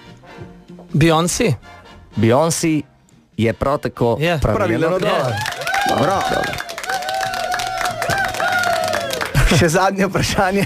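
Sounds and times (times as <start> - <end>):
speech: 0.9 - 6.7, 9.5 - 10.6
group of people clapping: 5.0 - 9.7
high-pitched whoop or tone: 5.2 - 9.4.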